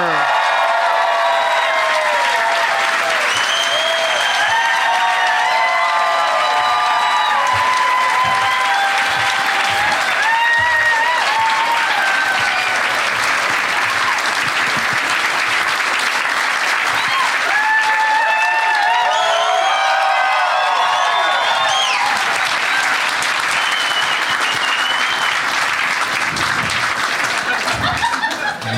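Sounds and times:
comedy show audience applauding: 0.0s - 28.7s
laughter: 27.3s - 28.7s.

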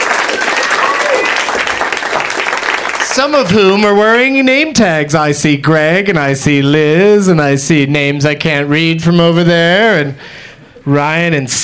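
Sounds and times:
crowd voices and cheers at the UCB Theater in Los Angeles: 0.0s - 3.6s
live audience applauding at the UCB Theater in Los Angeles: 0.0s - 3.8s
speech: 3.2s - 11.6s.

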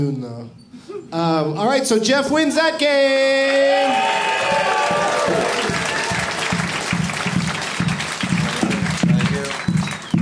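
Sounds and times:
speech: 0.0s - 5.8s
angry clapping from a group: 3.2s - 10.1s
crowd noise: 3.5s - 10.1s.

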